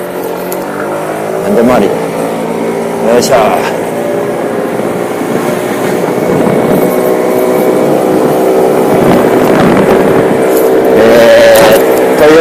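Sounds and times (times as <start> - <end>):
low droning hum: 0.0 - 12.3
wind blowing into the microphone: 1.3 - 12.3
speech: 1.5 - 2.1, 3.0 - 3.9.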